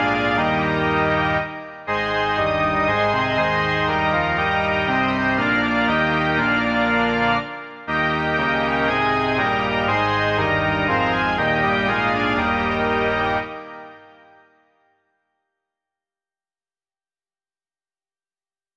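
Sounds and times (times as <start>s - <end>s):
organ: 0.0s - 14.6s.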